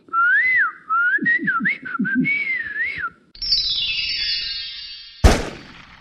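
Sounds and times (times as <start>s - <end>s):
person mouth whistling: 0.1s - 3.2s.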